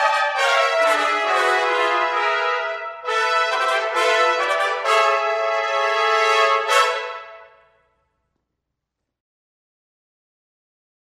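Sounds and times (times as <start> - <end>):
trumpet: 0.0 - 8.1.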